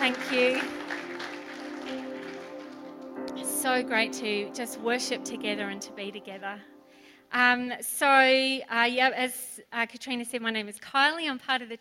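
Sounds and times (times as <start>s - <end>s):
applause: 0.0s - 3.6s
speech: 3.8s - 11.7s.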